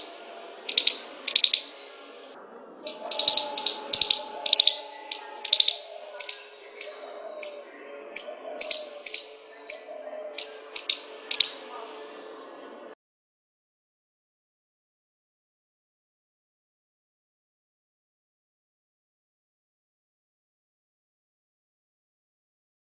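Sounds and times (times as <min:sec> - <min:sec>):
squirrel chattering with crisp clicking bursts: 0:00.7 - 0:01.8, 0:02.8 - 0:11.6.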